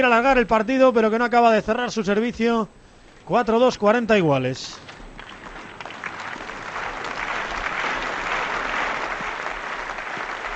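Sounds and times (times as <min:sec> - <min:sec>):
speech: 0:00.0 - 0:04.9
tennis crowd applauding: 0:05.2 - 0:10.5.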